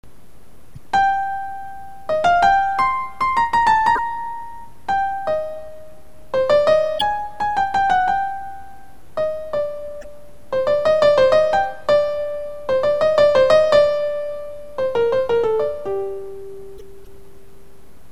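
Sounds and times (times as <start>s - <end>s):
piano: 0.8s - 17.8s.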